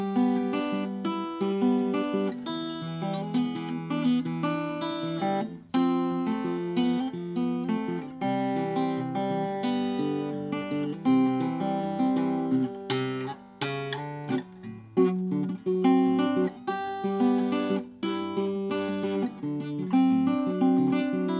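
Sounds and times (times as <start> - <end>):
1932 Oscar Schmidt Stella guitar in dark ebony: 0.0 - 21.3.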